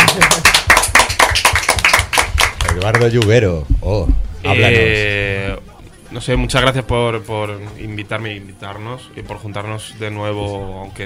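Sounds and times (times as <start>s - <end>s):
group clapping rhythmically: 0.0s - 3.7s
speech: 2.9s - 11.0s.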